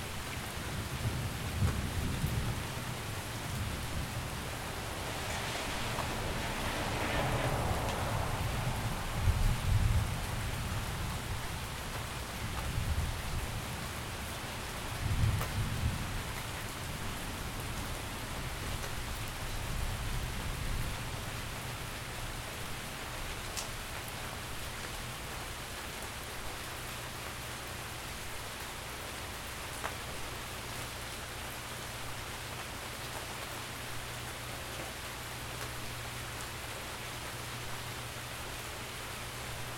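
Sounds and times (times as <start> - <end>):
rain: 0.0 - 39.7
thunderstorm: 0.4 - 22.4.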